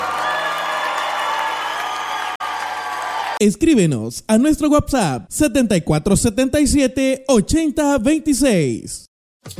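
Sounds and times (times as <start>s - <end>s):
audience applause: 0.0s - 3.4s
speech: 3.4s - 9.5s.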